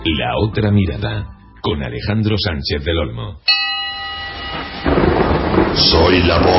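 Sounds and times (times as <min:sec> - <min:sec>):
speech: 0:00.2 - 0:03.5, 0:05.7 - 0:06.5
thunder rumbling: 0:04.4 - 0:06.5.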